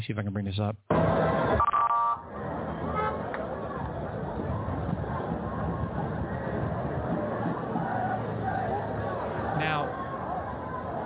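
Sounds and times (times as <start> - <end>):
speech: 0.1 - 1.7
crowd protesting in Israel: 2.2 - 11.0.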